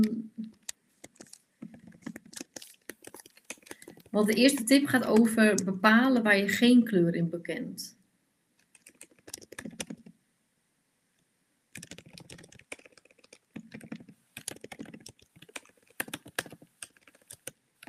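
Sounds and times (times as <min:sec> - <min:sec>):
computer keyboard typing: 0:00.0 - 0:05.8, 0:08.6 - 0:10.1, 0:11.8 - 0:17.8
speech: 0:04.2 - 0:08.0.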